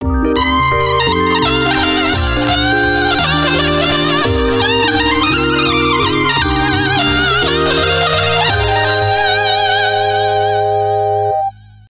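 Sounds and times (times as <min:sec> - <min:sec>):
guitar: 0:00.0 - 0:11.6.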